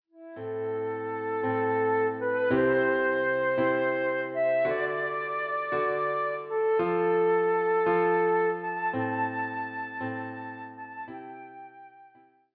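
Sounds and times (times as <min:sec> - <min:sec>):
flute melody: 0:00.2 - 0:12.5.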